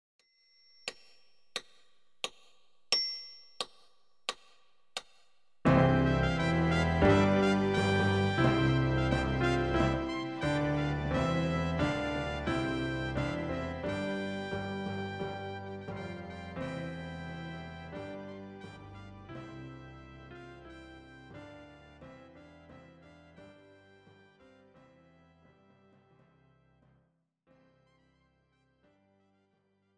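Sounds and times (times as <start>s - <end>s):
trumpet piece: 5.7s - 25.9s.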